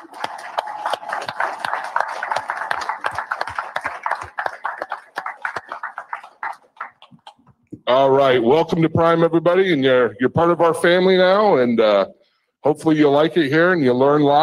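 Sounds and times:
audience applause for new attendees: 0.0 - 7.5
speech: 7.9 - 14.4.

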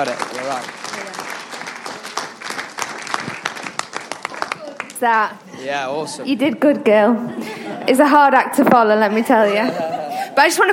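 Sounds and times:
speech: 0.0 - 1.5, 5.0 - 10.7
audience applause: 0.0 - 5.0
laughter: 7.2 - 8.2, 9.3 - 10.5.

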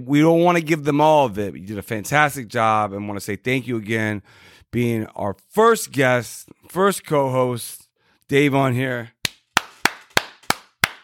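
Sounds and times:
speech: 0.0 - 9.2
round of applause: 9.2 - 11.0.

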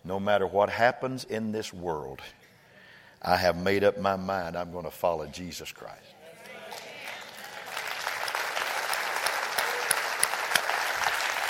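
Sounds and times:
speech: 0.1 - 2.4, 3.2 - 6.2
audience clapping: 6.4 - 11.4.

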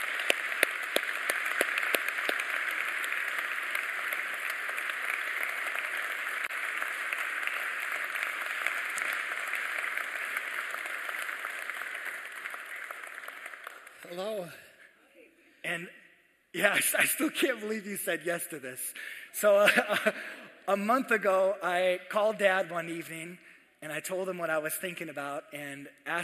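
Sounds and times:
church congregation applause welcoming a guest: 0.0 - 14.1
speech: 14.1 - 14.6, 15.7 - 16.0, 16.6 - 26.2.

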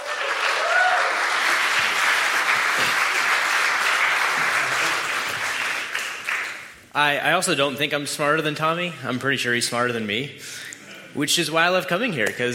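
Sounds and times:
audience applause: 0.0 - 6.8
speech: 7.0 - 12.5.

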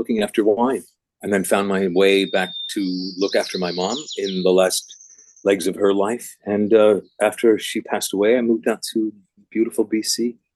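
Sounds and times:
speech: 0.0 - 10.4
birds singing on Galiano Island British Columbia: 1.6 - 6.2.

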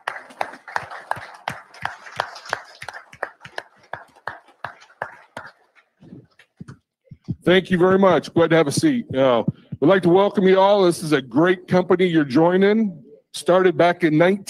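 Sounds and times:
audience round of applause: 0.0 - 6.6
speech: 7.4 - 14.4.

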